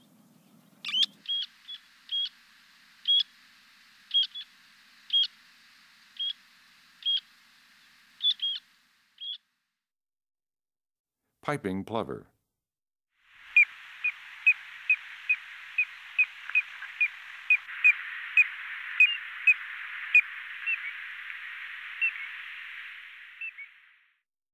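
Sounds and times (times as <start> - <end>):
Black-necked Stilt calls: 0.8 - 9.4, 13.3 - 24.0.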